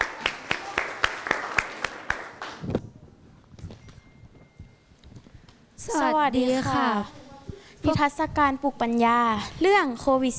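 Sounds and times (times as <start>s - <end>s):
audience applause: 0.0s - 2.6s
speech: 5.9s - 7.2s, 7.8s - 10.3s.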